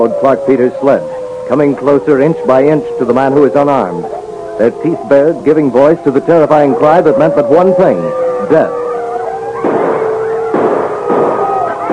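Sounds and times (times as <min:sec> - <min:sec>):
speech: 0:00.0 - 0:08.8
gunshots: 0:09.6 - 0:11.9.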